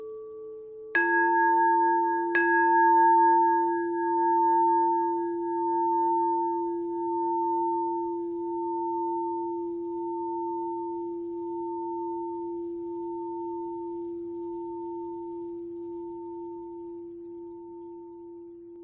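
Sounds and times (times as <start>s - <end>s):
bell with pitch bend twist: 0.9s - 18.2s.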